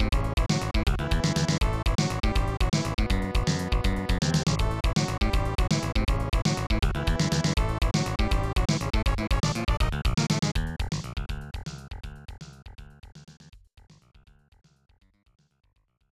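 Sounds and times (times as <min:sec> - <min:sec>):
level game music: 0:00.0 - 0:11.3.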